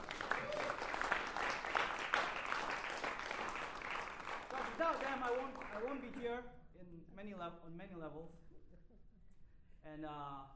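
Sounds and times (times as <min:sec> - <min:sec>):
crowd applause: 0:00.0 - 0:06.2
speech: 0:05.2 - 0:08.4, 0:09.8 - 0:10.5.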